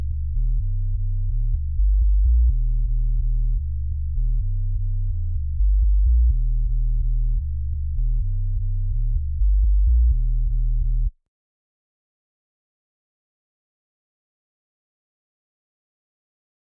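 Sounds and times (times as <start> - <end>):
future house sub bass in G at 126 BPM: 0.0 - 11.2.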